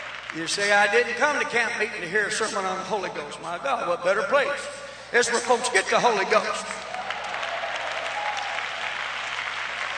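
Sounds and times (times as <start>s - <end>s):
audience clapping hands: 0.0s - 1.1s, 6.6s - 9.9s
speech: 0.3s - 6.8s.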